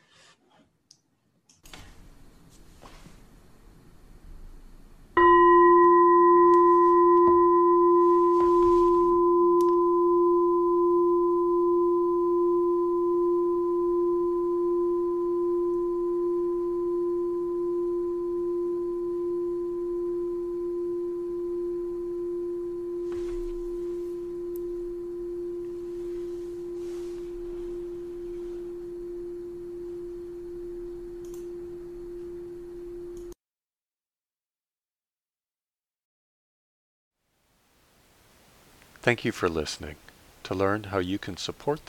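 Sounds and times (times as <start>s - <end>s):
meditation bell ringing: 5.2s - 33.2s
speech: 39.1s - 41.8s.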